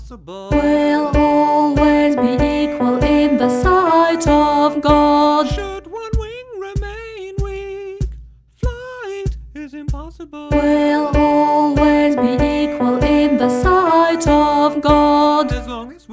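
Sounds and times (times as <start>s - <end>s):
choral music: 0.5s - 5.9s, 10.5s - 15.9s
alto singing: 0.5s - 6.0s, 10.5s - 16.0s.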